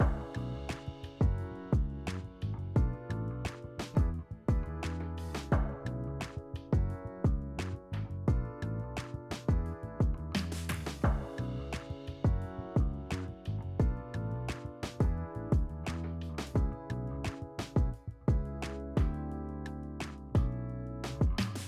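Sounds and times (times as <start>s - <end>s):
outro music loop: 0.0s - 21.6s.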